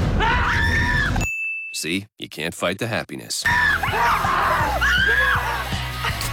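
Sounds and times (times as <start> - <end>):
people screaming in fright: 0.2 - 1.3, 3.5 - 6.1
speech: 1.8 - 5.7.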